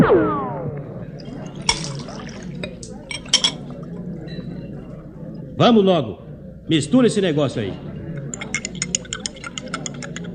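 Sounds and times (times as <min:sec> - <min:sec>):
murmuring background at a bar: 0:00.0 - 0:10.3
cachaça being poured into glasses at a bar: 0:01.2 - 0:04.1, 0:08.2 - 0:10.3
glasses clinking: 0:01.2 - 0:04.7, 0:08.2 - 0:10.3
speech: 0:05.6 - 0:07.9.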